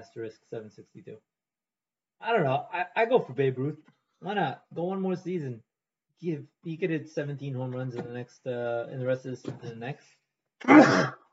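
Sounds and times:
speech: 0.0s - 1.4s, 2.2s - 11.2s
sneeze: 10.6s - 11.2s.

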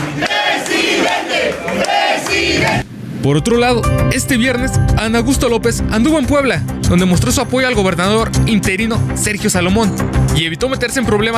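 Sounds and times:
crowd shouting president: 0.0s - 2.8s
speech: 0.2s - 0.4s, 1.3s - 11.3s.

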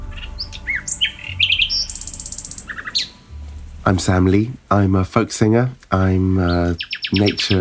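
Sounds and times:
bird singing: 0.0s - 4.4s, 6.0s - 7.5s
speech: 3.9s - 7.5s.

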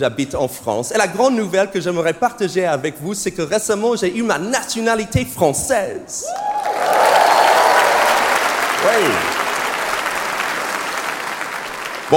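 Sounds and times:
speech: 0.0s - 6.9s, 8.8s - 9.3s
cheers and whoops: 6.2s - 10.4s
audience applause: 6.3s - 12.1s.

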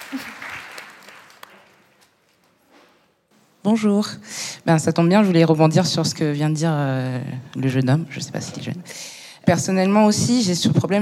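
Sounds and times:
audience applause: 0.0s - 1.9s
speech: 0.1s - 0.4s, 3.6s - 11.0s.

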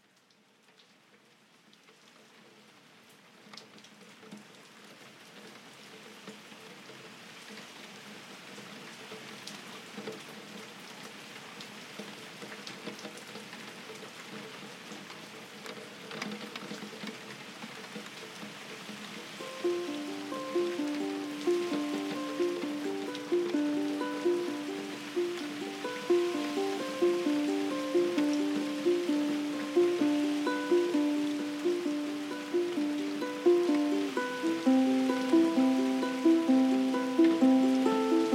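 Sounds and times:
rain falling on a window in a remote village in Portugal: 0.0s - 38.3s
ukulele melody of repeated chiming notes: 19.4s - 38.3s.

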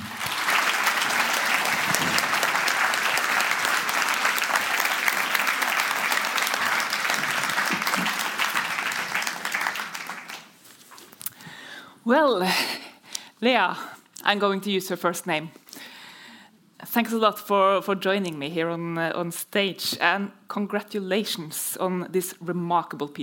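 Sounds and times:
audience applause welcoming guests onto a stage: 0.0s - 10.6s
speech: 12.1s - 12.7s, 13.4s - 15.6s, 17.0s - 23.2s.

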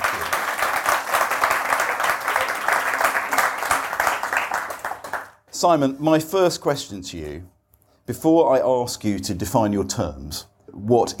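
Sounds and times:
audience applause welcoming a guest on stage: 0.0s - 5.4s
speech: 5.6s - 11.1s.

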